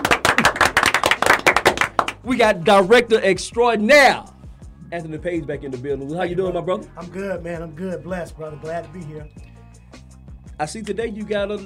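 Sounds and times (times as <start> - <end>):
people clapping: 0.0 - 2.4
speech: 2.2 - 4.3, 4.9 - 9.4, 10.6 - 11.6.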